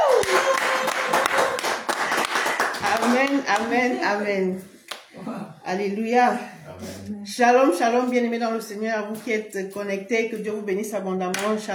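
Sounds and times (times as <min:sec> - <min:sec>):
church congregation cheering with shouts of joy: 0:00.0 - 0:01.6
French-speaking church congregation clapping: 0:00.0 - 0:04.0
speech: 0:03.1 - 0:11.7.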